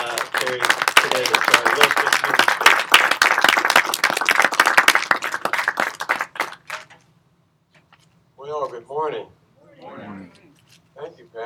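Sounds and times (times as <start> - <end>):
church congregation clapping to welcome two guests: 0.0 - 7.0
speech: 8.8 - 9.4.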